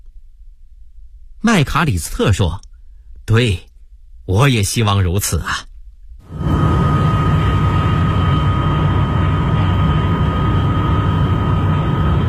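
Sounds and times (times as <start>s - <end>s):
speech: 1.4s - 2.7s, 3.3s - 3.7s, 4.3s - 5.7s
airplane landing at Beijing Capital International Airport: 6.3s - 12.2s.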